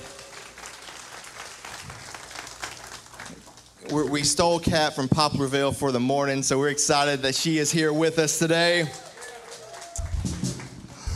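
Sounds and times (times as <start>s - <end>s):
audience applause for worship team: 0.0s - 3.8s, 8.7s - 11.1s
speech: 3.9s - 9.0s.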